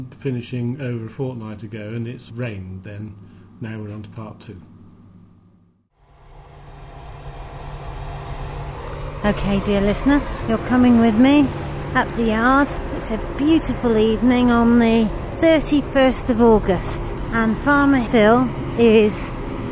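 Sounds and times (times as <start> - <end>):
speech: 0.0 - 4.7, 9.2 - 19.4
combine harvester droning while cleaning off grass seed: 6.0 - 19.7.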